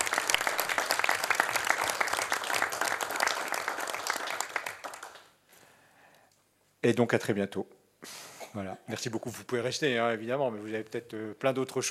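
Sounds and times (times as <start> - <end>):
audience applause: 0.0 - 5.3
speech: 6.8 - 11.8.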